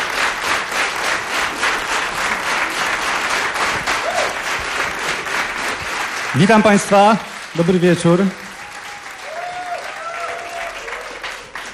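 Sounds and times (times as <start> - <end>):
warm audience applause: 0.0 - 11.7
speech: 6.4 - 8.4.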